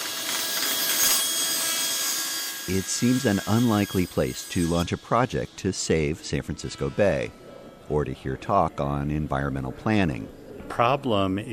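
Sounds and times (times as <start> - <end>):
table saws cutting through wood: 0.0 - 7.4
speech: 2.7 - 11.5.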